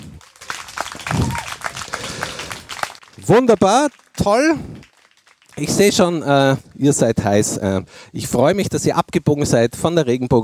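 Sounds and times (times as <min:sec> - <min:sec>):
audience applauding: 0:00.0 - 0:06.5
speech: 0:03.3 - 0:04.7, 0:05.6 - 0:10.4.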